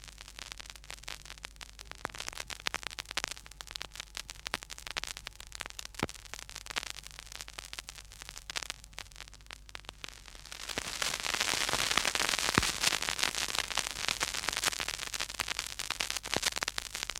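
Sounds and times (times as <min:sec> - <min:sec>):
crackle: 0:00.0 - 0:17.1.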